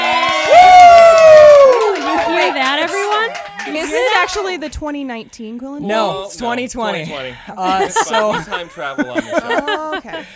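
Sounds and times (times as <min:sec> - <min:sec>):
long loud high voiced whoop: 0:00.0 - 0:02.4
live studio audience cheering and whooping: 0:00.0 - 0:04.6
speech: 0:04.2 - 0:10.3
laughter: 0:07.6 - 0:10.3.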